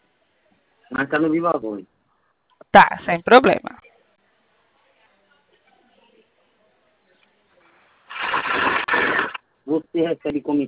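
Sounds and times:
speech: 0:00.9 - 0:01.9, 0:02.8 - 0:03.8, 0:09.8 - 0:10.6
sewing machine running: 0:08.1 - 0:09.4.

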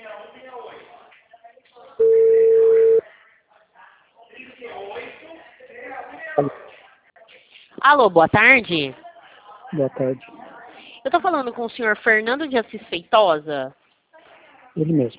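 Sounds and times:
telephone ringing tone on an outgoing call: 0:02.0 - 0:03.0
speech: 0:06.4 - 0:06.6, 0:07.9 - 0:09.0, 0:09.7 - 0:10.3, 0:11.0 - 0:13.8, 0:14.8 - 0:15.1.

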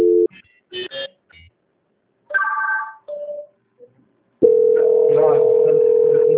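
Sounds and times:
steady telephone line tone: 0:04.4 - 0:06.3.

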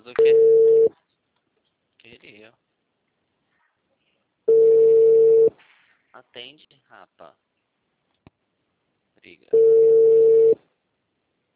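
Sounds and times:
telephone ringback tone of an unanswered call: 0:00.2 - 0:00.9, 0:04.5 - 0:05.5, 0:09.5 - 0:10.6
speech: 0:06.2 - 0:07.5, 0:09.2 - 0:10.2.

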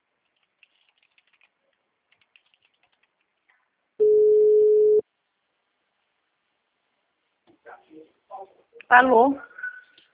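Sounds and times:
telephone busy signal: 0:04.0 - 0:05.0
speech: 0:08.9 - 0:09.5.

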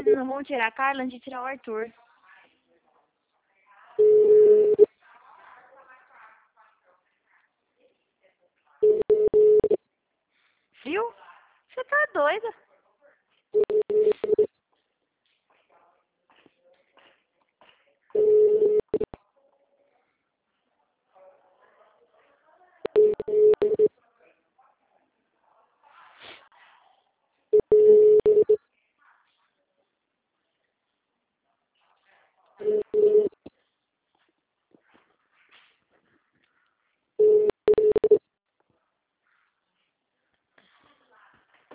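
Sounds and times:
speech: 0:00.1 - 0:02.0, 0:10.8 - 0:11.2, 0:11.8 - 0:12.6
telephone ringback tones while calling city hall: 0:04.0 - 0:04.9, 0:08.8 - 0:09.8, 0:13.6 - 0:14.5, 0:18.2 - 0:19.1, 0:22.9 - 0:23.9, 0:27.6 - 0:28.6, 0:32.6 - 0:33.3, 0:37.2 - 0:38.2.

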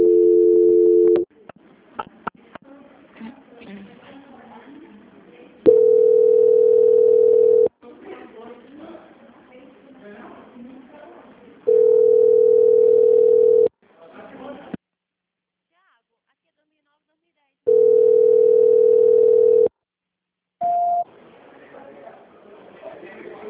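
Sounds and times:
telephone line tone during a call transfer: 0:00.0 - 0:01.2, 0:05.7 - 0:07.7, 0:11.7 - 0:13.7, 0:17.7 - 0:19.7.

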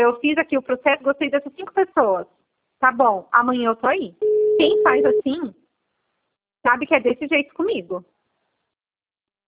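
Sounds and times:
speech: 0:00.0 - 0:05.6, 0:06.6 - 0:08.2
call alert beep when a participant drops: 0:04.2 - 0:05.2.

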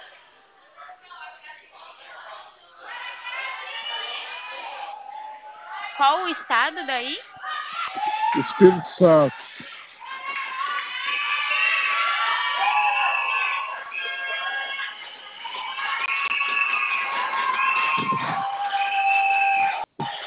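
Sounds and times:
happy crowd cheering and shouting: 0:02.8 - 0:20.2
speech: 0:06.0 - 0:09.4
high child-like voices: 0:07.3 - 0:11.1.

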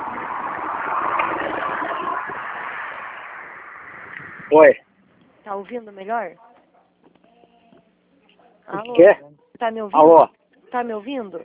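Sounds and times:
truck passing by: 0:00.0 - 0:04.8
speech: 0:04.5 - 0:04.8, 0:05.6 - 0:06.5, 0:08.7 - 0:11.4.

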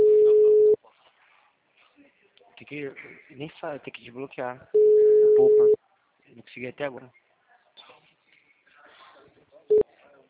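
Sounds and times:
telephone call ringing unanswered: 0:00.0 - 0:00.8, 0:04.8 - 0:05.8
speech: 0:02.7 - 0:04.8, 0:05.4 - 0:05.8, 0:06.5 - 0:07.2.

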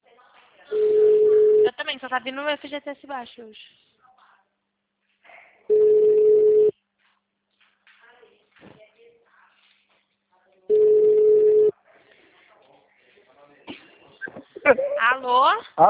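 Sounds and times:
telephone busy signal: 0:00.7 - 0:01.7, 0:05.7 - 0:06.7, 0:10.7 - 0:11.7
speech: 0:02.0 - 0:03.8, 0:14.7 - 0:15.8.

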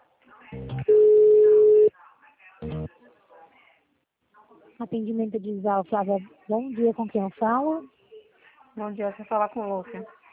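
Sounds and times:
telephone line tone while a call is being transferred: 0:00.8 - 0:01.9
speech: 0:04.8 - 0:08.0, 0:08.8 - 0:10.2.

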